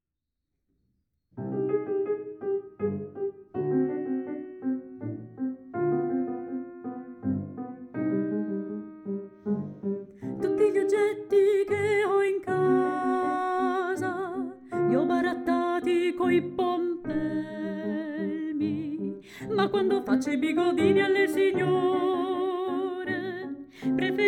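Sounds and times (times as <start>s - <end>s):
piano: 1.3s - 24.2s
person singing satirical songs: 10.2s - 24.2s.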